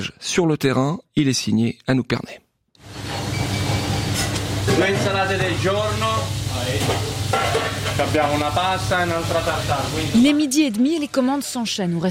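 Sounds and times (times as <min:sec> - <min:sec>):
speech: 0:00.0 - 0:03.2, 0:04.7 - 0:12.1
guanciale frying in a pan for carbonara in a Geneva restaurant kitchen: 0:02.8 - 0:11.0.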